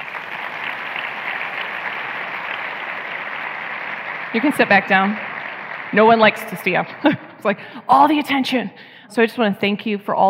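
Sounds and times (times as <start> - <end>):
audience applause: 0.0 - 7.3
speech: 4.3 - 5.3, 5.9 - 10.2.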